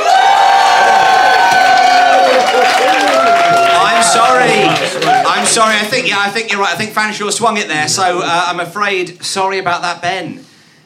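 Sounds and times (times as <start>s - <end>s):
audience cheering and whoops: 0.0s - 5.5s
audience applause: 0.0s - 6.0s
speech: 5.5s - 10.5s.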